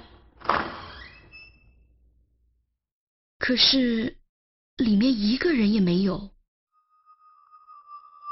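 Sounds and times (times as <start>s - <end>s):
door being pushed open: 0.0s - 1.8s
speech: 3.5s - 4.2s, 4.8s - 6.4s.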